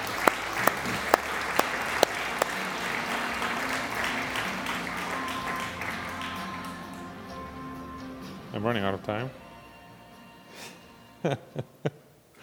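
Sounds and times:
audience applause: 0.0s - 7.0s
speech: 8.6s - 9.4s, 11.2s - 12.0s.

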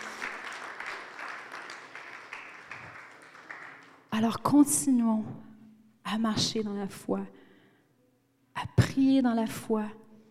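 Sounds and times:
audience applauding: 0.0s - 4.2s
speech: 4.2s - 5.5s, 6.1s - 7.4s, 9.0s - 10.0s.

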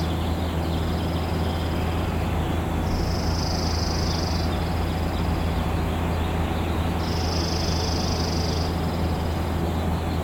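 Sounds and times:
steady low rumbling hum in Maple Leaf, Seattle: 0.0s - 10.2s.

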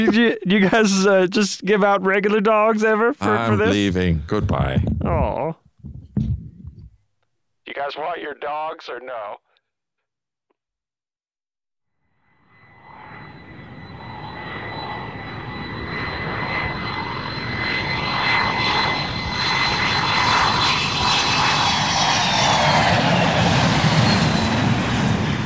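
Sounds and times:
speech: 0.0s - 6.4s, 7.7s - 9.4s
airplane engine climbing: 12.5s - 25.4s.

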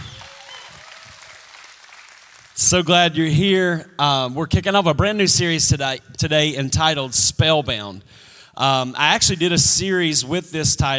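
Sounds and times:
audience hand clapping: 0.0s - 2.8s
speech: 2.6s - 10.9s.

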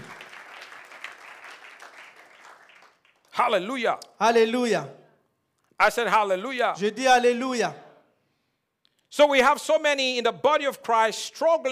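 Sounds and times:
church congregation applauding at a worship service: 0.0s - 3.6s
speech: 3.4s - 5.0s, 5.8s - 7.8s, 9.1s - 11.7s.

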